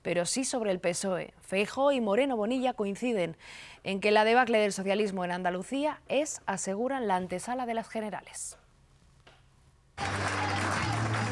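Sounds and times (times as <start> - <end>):
speech: 0.0 - 8.6, 10.0 - 10.4
cheering and applause at party headquarters in Génova: 10.0 - 11.2.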